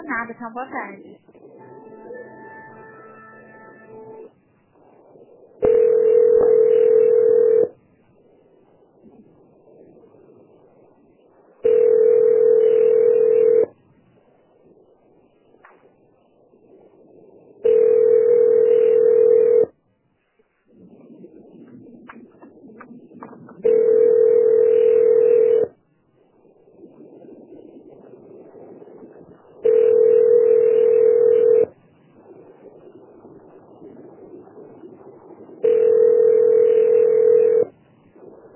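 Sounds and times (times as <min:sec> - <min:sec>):
speech: 0:00.1 - 0:01.4
telephone tones during a call transfer: 0:05.6 - 0:07.7, 0:11.6 - 0:13.7, 0:17.6 - 0:19.7, 0:23.6 - 0:25.7, 0:29.6 - 0:31.7, 0:35.6 - 0:37.7.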